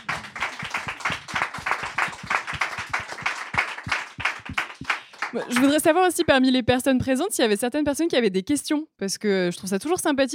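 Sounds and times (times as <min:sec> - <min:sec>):
audience applause: 0:00.0 - 0:05.8
speech: 0:05.3 - 0:10.3.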